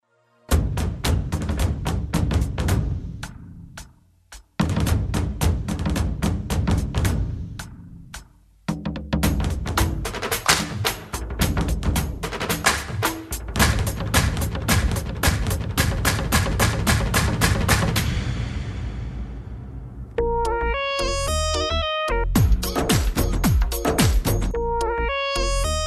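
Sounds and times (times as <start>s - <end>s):
DSP drums: 0.5s - 25.8s.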